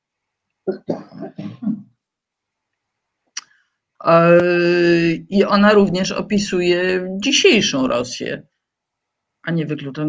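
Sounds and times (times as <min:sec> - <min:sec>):
speech: 0:00.7 - 0:01.8, 0:04.0 - 0:08.5, 0:09.4 - 0:10.0
throat clearing: 0:00.7 - 0:01.8.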